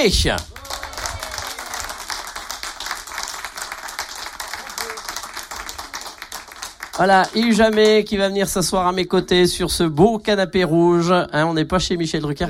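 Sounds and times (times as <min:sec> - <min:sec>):
speech: 0:00.0 - 0:00.5, 0:07.0 - 0:12.4
audience applause for a guest: 0:00.2 - 0:08.1.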